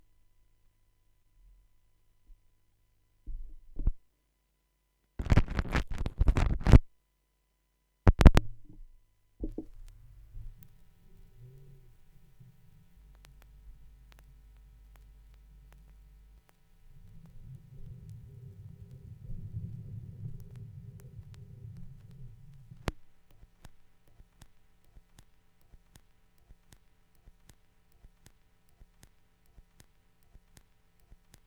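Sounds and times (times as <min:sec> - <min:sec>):
vinyl record noise: 0:05.2 - 0:06.9, 0:08.1 - 0:08.5, 0:09.4 - 0:31.4.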